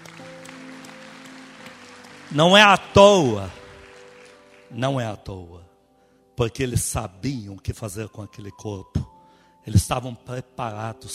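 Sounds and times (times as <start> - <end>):
audience applause: 0.0 - 4.7
speech: 2.3 - 3.6, 4.7 - 5.7, 6.4 - 11.1.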